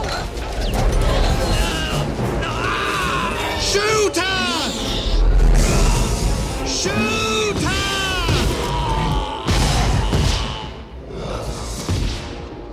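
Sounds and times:
raptors bellowing roars: 0.0 - 12.0.

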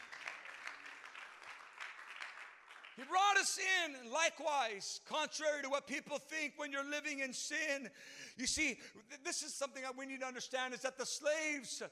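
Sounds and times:
audience clapping hands: 0.0 - 3.7
speech: 3.0 - 11.8.

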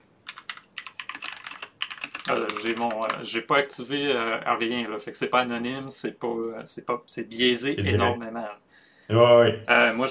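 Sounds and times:
typing a Google search on a computer keyboard: 0.2 - 3.3
speech: 2.3 - 10.0.

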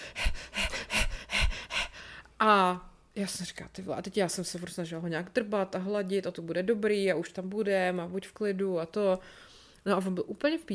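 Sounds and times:
person imitating a dog's panting: 0.0 - 2.0
speech: 2.4 - 10.7.

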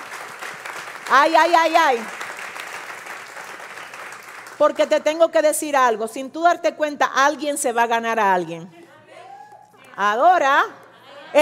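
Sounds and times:
audience applause: 0.0 - 4.6
speech: 1.1 - 2.2, 4.6 - 8.8, 10.0 - 11.4.

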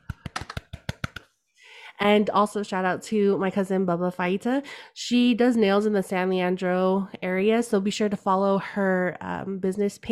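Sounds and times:
small round of applause: 0.0 - 1.2
speech: 2.0 - 10.1.

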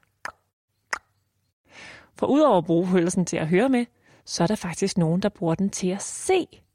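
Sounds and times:
tongue clicks: 0.0 - 1.2
speech: 2.2 - 6.7.

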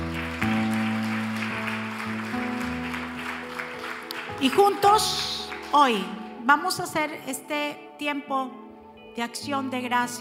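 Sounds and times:
loud sustained audience applause: 0.0 - 6.3
low keyboard or organ chords: 0.0 - 10.1
speech: 4.4 - 8.6, 9.2 - 10.1.

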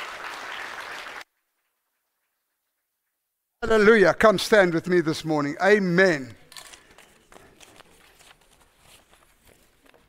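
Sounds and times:
crowd clapping: 0.0 - 2.5
speech: 3.6 - 6.4.

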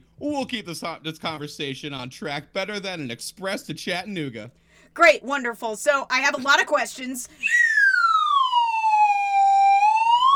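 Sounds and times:
speech: 0.2 - 7.6
slide whistle: 7.4 - 10.3.

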